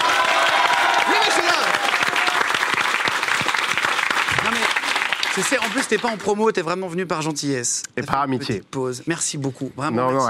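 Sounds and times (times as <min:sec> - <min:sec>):
audience applause: 0:00.0 - 0:06.3
speech: 0:05.4 - 0:10.2.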